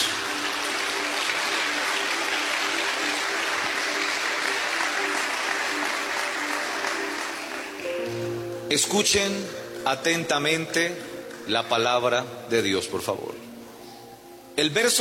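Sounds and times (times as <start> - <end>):
audience applause: 0.0 - 8.2
speech: 8.7 - 13.5, 14.6 - 14.9.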